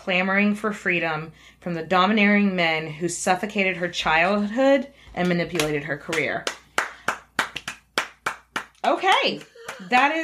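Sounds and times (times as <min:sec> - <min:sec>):
speech: 0:00.0 - 0:06.6, 0:09.0 - 0:10.2
hand clapping: 0:05.2 - 0:10.2.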